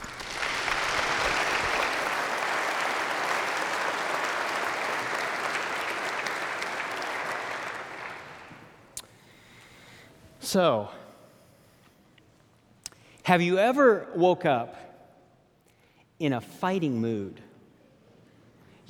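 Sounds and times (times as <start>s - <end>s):
audience applause: 0.0s - 8.8s
speech: 10.5s - 11.0s, 13.3s - 14.8s, 16.2s - 17.5s.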